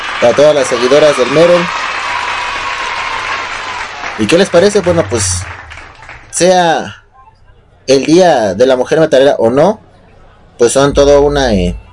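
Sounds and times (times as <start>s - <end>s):
applause: 0.0s - 6.6s
speech: 0.2s - 1.8s, 4.2s - 5.5s, 6.4s - 7.0s, 7.9s - 9.8s, 10.6s - 11.8s.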